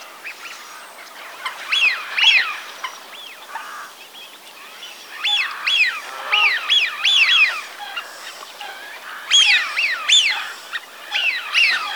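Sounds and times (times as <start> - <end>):
Eurasian wigeon whistling calls: 5.1 - 8.1, 9.3 - 11.9.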